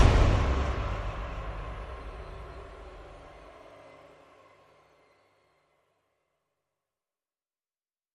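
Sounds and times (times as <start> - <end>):
percussion: 0.0 - 4.3
sound effects: 0.0 - 5.4.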